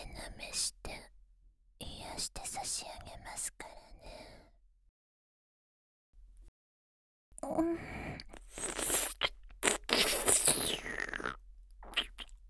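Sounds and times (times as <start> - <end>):
oral sex sounds, right channel: 7.4 - 12.4.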